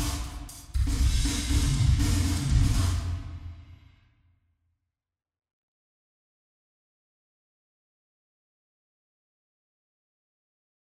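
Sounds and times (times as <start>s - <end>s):
drums with reverb: 0.0s - 3.9s.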